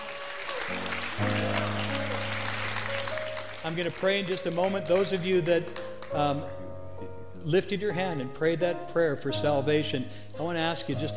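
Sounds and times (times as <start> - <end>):
audience applauding with hand claps: 0.0 - 6.3
speech: 3.6 - 11.1.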